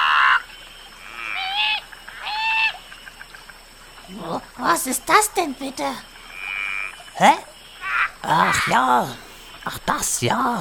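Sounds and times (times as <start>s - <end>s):
birds of paradise calling: 0.0s - 10.6s
speech: 4.5s - 6.1s, 7.2s - 7.5s, 8.2s - 10.6s.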